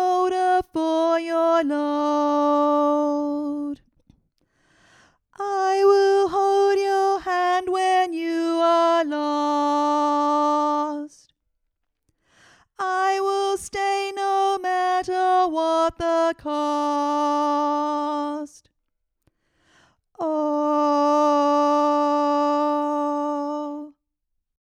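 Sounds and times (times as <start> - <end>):
alto voice in a community choir: 0.0 - 3.8, 5.4 - 11.2, 12.8 - 18.6, 20.2 - 24.0.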